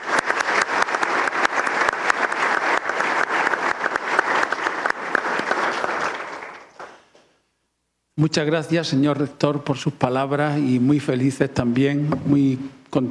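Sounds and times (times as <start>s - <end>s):
audience applause: 0.0s - 7.3s
speech: 8.2s - 13.0s.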